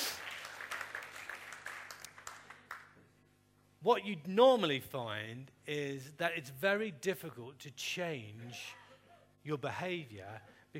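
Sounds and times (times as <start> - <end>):
audience applause: 0.0 - 2.9
speech: 3.8 - 8.8, 9.4 - 10.7.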